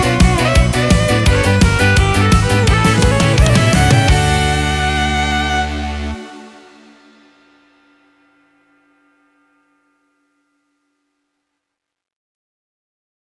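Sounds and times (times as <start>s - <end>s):
Yamaha PSR SX720 keyboard style accompaniment: 0.0s - 7.8s.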